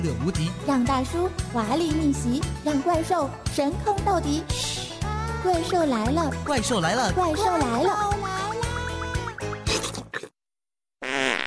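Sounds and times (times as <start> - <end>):
speech: 0.0 - 8.2
wet sputtering farts: 9.5 - 10.4, 11.0 - 11.4.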